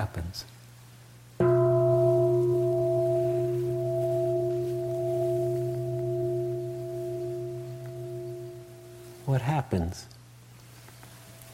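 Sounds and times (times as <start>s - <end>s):
speech: 0.0s - 0.5s, 9.4s - 10.2s
meditation bell ringing: 1.4s - 9.4s.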